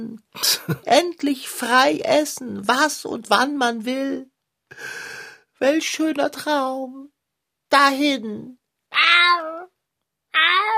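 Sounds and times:
speech: 0:00.0 - 0:07.1, 0:07.7 - 0:09.7, 0:10.3 - 0:10.7
laughter: 0:00.4 - 0:00.9
cat meowing plaintively: 0:08.9 - 0:09.7, 0:10.3 - 0:10.7.

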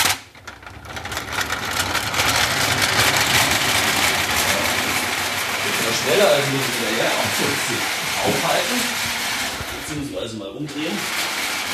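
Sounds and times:
small wind-up toy train rattling along the floor: 0:00.0 - 0:10.0, 0:10.8 - 0:11.7
speech: 0:06.4 - 0:09.1, 0:09.9 - 0:11.3.

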